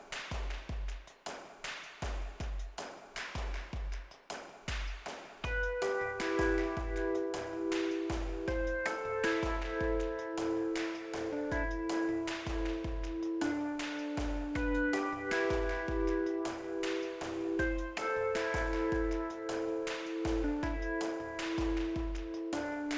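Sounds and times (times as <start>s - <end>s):
percussion: 0.0s - 22.9s
Rhodes electric piano: 5.5s - 22.9s.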